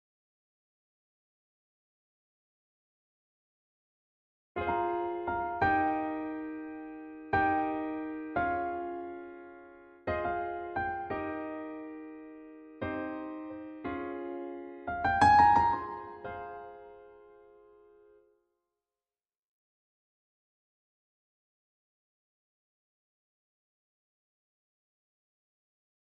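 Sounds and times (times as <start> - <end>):
piano: 4.6 - 18.4.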